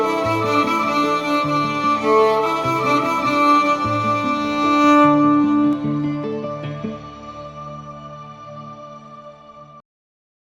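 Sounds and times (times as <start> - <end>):
violin playing: 0.0 - 7.9.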